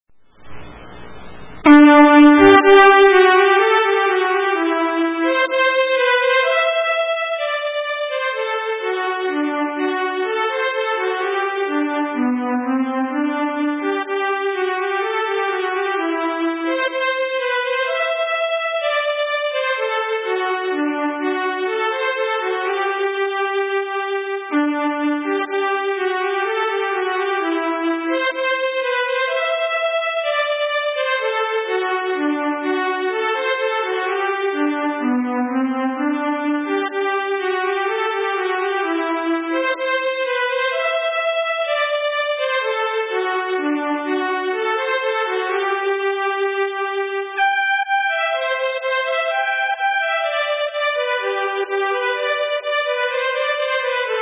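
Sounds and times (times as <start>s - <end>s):
polska dance tune: 0.4s - 54.2s.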